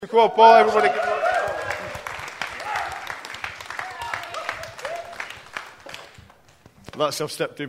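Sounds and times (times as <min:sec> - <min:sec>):
speech: 0:00.0 - 0:01.2, 0:07.0 - 0:07.6
voices whooping: 0:00.3 - 0:03.2, 0:03.8 - 0:05.4
audience applauding: 0:00.5 - 0:06.6.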